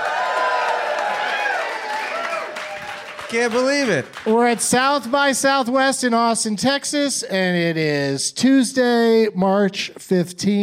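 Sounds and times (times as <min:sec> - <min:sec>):
live audience cheering at South by Southwest in Austin, Texas: 0:00.0 - 0:05.3
speech: 0:03.3 - 0:10.6.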